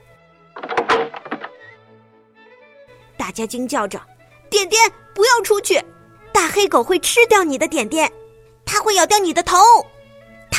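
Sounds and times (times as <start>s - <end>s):
front door of a house opening: 0.6s - 1.7s
speech: 3.3s - 8.2s, 8.8s - 9.9s.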